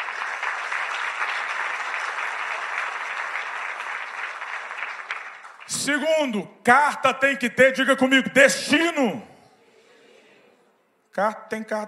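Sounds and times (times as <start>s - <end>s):
audience applauding: 0.0s - 6.0s
speech: 5.7s - 9.3s, 11.2s - 11.8s.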